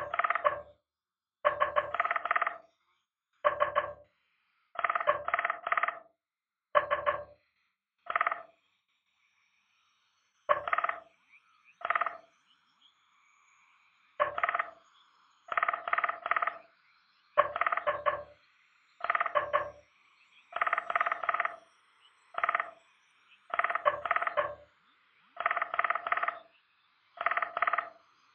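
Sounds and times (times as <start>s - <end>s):
bird repeating clicky call in Morse-code-like pattern: 0.0s - 0.7s, 1.5s - 2.6s, 3.4s - 4.0s, 4.8s - 6.0s, 6.8s - 7.4s, 8.1s - 8.5s, 10.5s - 11.1s, 11.8s - 12.3s, 14.2s - 14.8s, 15.5s - 16.6s, 17.4s - 18.4s, 19.0s - 19.8s, 20.5s - 21.7s, 22.4s - 22.8s, 23.5s - 24.7s, 25.4s - 26.5s, 27.2s - 28.0s.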